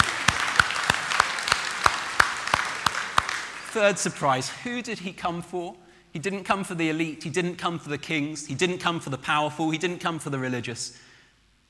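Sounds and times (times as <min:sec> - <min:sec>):
audience round of applause: 0:00.0 - 0:04.2
speech: 0:03.7 - 0:11.1.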